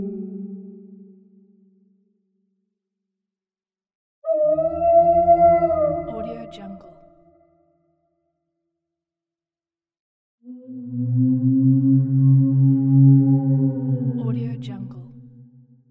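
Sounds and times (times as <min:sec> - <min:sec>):
ghostly voices: 0:04.3 - 0:06.9, 0:10.5 - 0:15.3.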